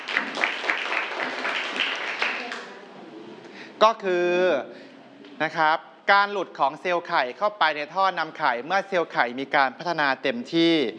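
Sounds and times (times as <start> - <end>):
classroom applause: 0.0 - 2.8
speech: 3.8 - 10.9.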